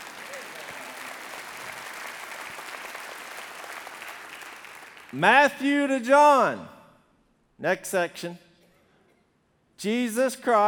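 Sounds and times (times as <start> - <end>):
audience clapping: 0.0 - 5.2
speech: 5.1 - 6.8, 7.6 - 8.4, 9.8 - 10.6.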